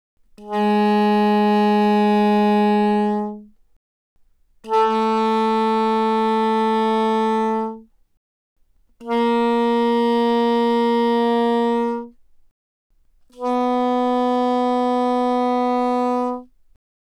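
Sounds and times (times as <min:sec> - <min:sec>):
soprano saxophone notes without vibrato: 0:00.4 - 0:03.5, 0:04.6 - 0:07.9, 0:09.0 - 0:12.2, 0:13.3 - 0:16.5.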